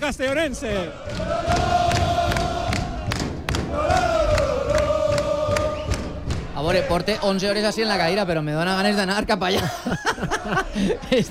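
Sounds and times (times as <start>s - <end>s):
speech: 0.0s - 1.9s, 6.6s - 11.2s
football fans cheering at street parade: 0.0s - 8.0s
laughter: 9.4s - 11.2s.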